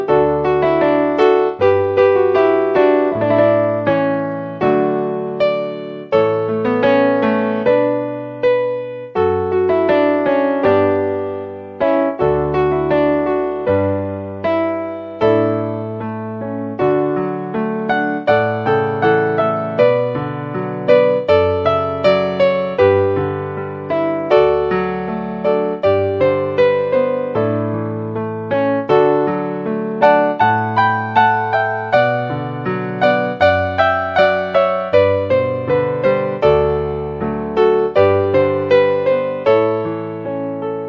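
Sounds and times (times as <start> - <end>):
piano canon: 0.0 - 40.8.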